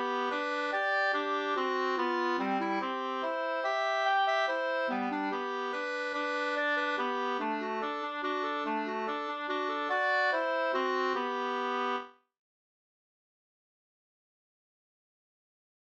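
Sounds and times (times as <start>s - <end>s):
mazurka music: 0.0s - 12.0s.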